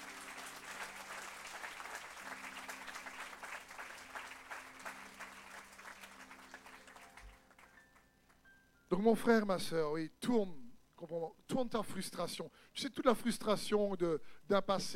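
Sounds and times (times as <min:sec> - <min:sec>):
church congregation applauding in praise of Jesus: 0:00.0 - 0:08.1
speech: 0:08.9 - 0:14.9.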